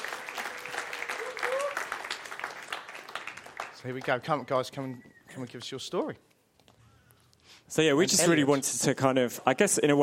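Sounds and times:
audience clapping: 0.0 - 4.7
speech: 3.8 - 6.3, 7.7 - 10.0.

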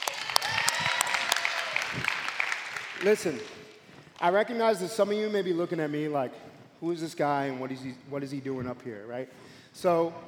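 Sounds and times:
audience applause: 0.0 - 3.8
speech: 3.0 - 3.6, 4.2 - 10.2.

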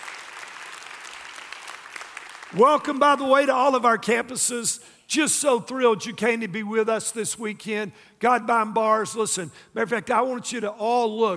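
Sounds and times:
audience applauding: 0.0 - 2.6
speech: 2.5 - 11.3.

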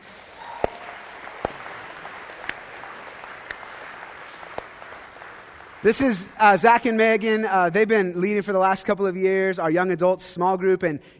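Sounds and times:
audience cheering: 0.0 - 6.9
audience applause: 0.0 - 7.3
speech: 5.8 - 11.1.

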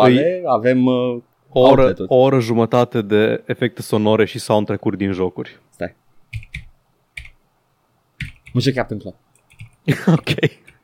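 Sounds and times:
speech: 0.0 - 6.5, 8.5 - 9.2, 9.8 - 10.8
computer keyboard and mouse clicks: 6.3 - 7.4, 8.2 - 8.6, 9.3 - 9.9
laughter: 9.9 - 10.8.

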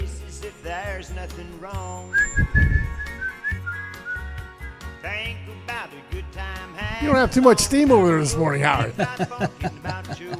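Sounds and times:
speech: 0.6 - 3.6, 5.0 - 10.3
person whistling a tune: 2.1 - 4.4
laughter: 7.0 - 10.3.

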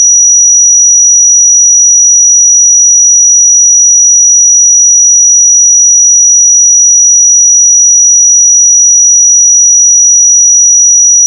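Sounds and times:
5828 Hz pure sine tone: 0.0 - 11.2.

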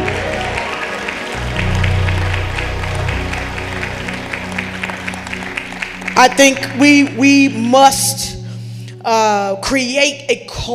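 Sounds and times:
audience clapping: 0.0 - 7.7
speech: 6.2 - 8.4, 9.0 - 10.7.

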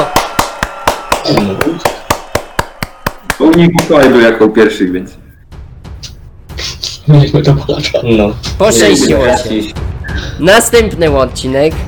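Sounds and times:
sharp hand claps: 0.0 - 4.3
speech: 3.6 - 5.2, 7.1 - 11.8.

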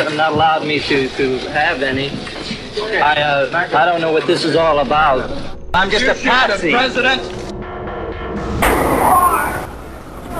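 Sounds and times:
speech: 0.0 - 7.4
loud gunshot as Lee Harvey Oswald is shot on live television: 8.5 - 9.5.

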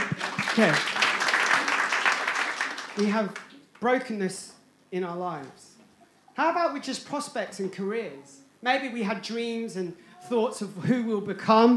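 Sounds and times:
audience clapping: 0.0 - 3.8
speech: 0.6 - 1.0, 3.0 - 5.6, 6.4 - 11.7.

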